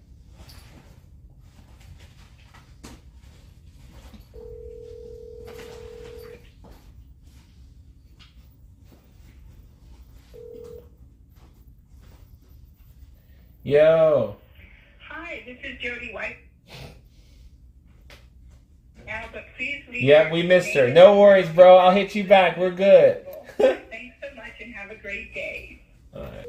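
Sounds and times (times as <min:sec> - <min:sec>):
phone line ring tone: 0:04.3 - 0:06.5, 0:10.3 - 0:11.0
speech: 0:13.7 - 0:14.4, 0:20.0 - 0:23.8
laughter: 0:23.2 - 0:23.9.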